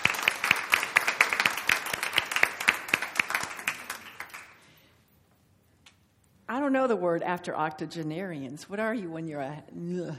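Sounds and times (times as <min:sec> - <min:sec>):
audience applause: 0:00.0 - 0:04.6
speech: 0:06.7 - 0:10.1.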